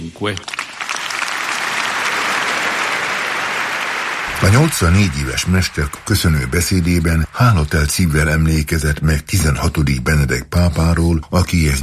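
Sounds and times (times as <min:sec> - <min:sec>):
speech: 0:00.1 - 0:00.6, 0:04.4 - 0:11.8
loud applause from about 5000 participants in Paul VI Hall: 0:00.2 - 0:08.6.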